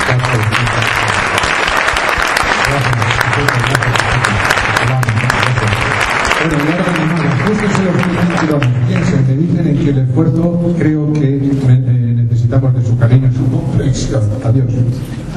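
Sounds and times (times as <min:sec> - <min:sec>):
audience applause: 0:00.0 - 0:09.5
hum of voices and speech: 0:02.4 - 0:15.3
speech: 0:12.8 - 0:15.3.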